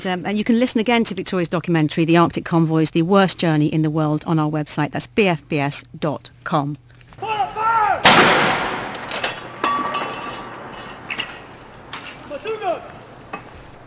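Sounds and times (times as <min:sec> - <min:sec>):
speech: 0:00.0 - 0:06.8
62-gun salute artillery fire by the Royal Gibraltar Regiment at the Tower of London: 0:07.2 - 0:09.7, 0:10.4 - 0:13.8.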